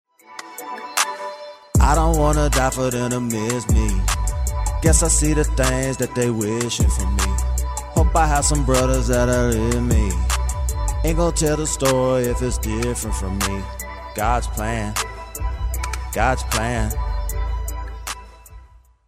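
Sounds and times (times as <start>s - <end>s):
person singing: 0.3s - 18.6s.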